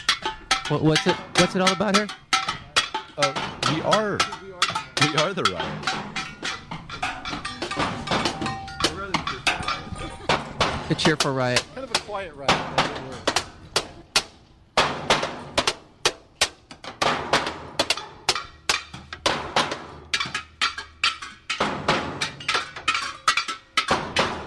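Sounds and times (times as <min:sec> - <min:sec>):
banging on household objects including washing machines in a jam: 0:00.0 - 0:24.4
speech: 0:00.7 - 0:02.2, 0:03.2 - 0:04.4, 0:05.1 - 0:06.0, 0:10.9 - 0:13.3.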